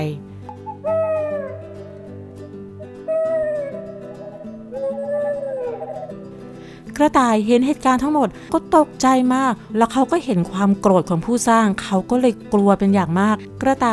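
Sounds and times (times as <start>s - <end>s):
speech: 0.0s - 1.1s, 7.0s - 13.9s
startled owl calling: 0.5s - 6.4s.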